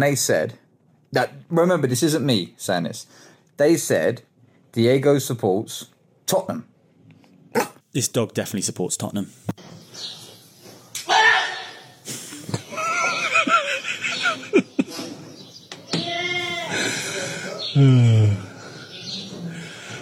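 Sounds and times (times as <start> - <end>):
speech: 0.0 - 6.7, 7.5 - 10.2, 17.8 - 18.4
goat screaming: 11.0 - 12.0, 15.9 - 16.8
laughter: 12.0 - 15.3.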